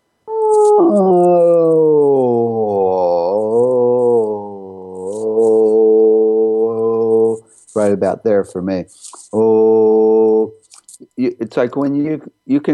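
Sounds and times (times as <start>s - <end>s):
person humming gliding tone: 0.3s - 7.5s, 9.3s - 10.6s
speech: 0.8s - 1.3s, 7.8s - 9.9s, 11.2s - 12.7s.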